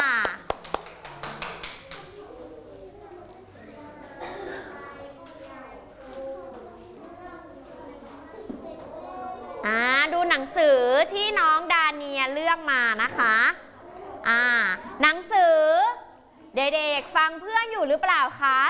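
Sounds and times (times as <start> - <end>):
children clapping: 0.0 - 2.2
children chattering in a classroom: 1.8 - 16.7
speech: 14.3 - 15.7, 16.6 - 18.6.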